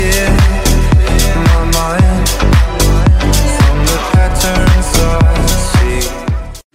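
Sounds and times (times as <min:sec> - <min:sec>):
sad Russian song melody: 0:00.2 - 0:06.4.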